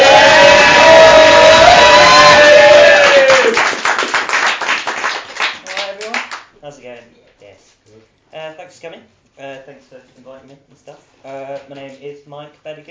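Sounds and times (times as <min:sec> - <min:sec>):
audience whooping and shouting: 0:00.0 - 0:03.6
audience applause welcoming a poet to the stage: 0:00.0 - 0:06.4
speech: 0:09.8 - 0:12.8.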